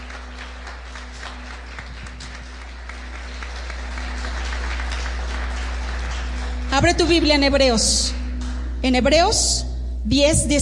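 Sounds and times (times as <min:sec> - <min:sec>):
audience applause: 0:00.0 - 0:07.3
speech: 0:06.8 - 0:08.2, 0:08.8 - 0:10.6.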